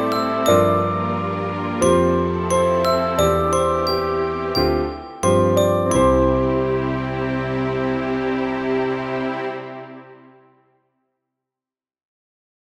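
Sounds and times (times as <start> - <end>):
chime bars: 0.0 - 7.5
musical accompaniment: 0.0 - 10.6.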